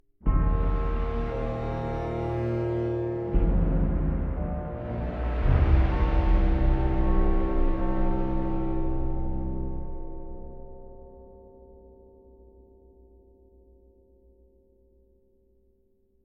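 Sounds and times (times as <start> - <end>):
string instrument: 0.3 - 11.3.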